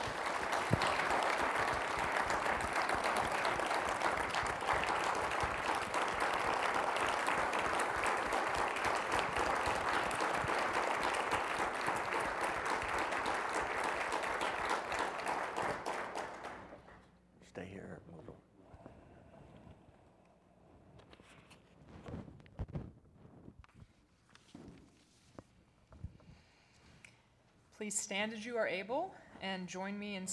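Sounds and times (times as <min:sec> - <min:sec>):
audience applause: 0:00.0 - 0:17.0
speech: 0:27.8 - 0:30.3.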